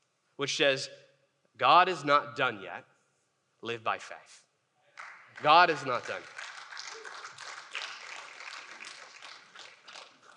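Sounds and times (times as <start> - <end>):
speech: 0.4 - 1.0, 1.6 - 2.9, 3.6 - 4.4, 5.4 - 6.5
audience clapping: 5.0 - 10.3.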